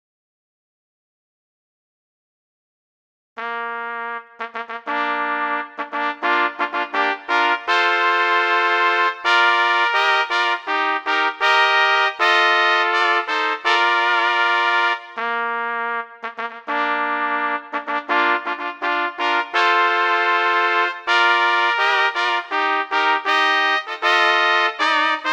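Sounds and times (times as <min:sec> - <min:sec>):
three trumpets playing a bugle call: 0:03.4 - 0:25.3.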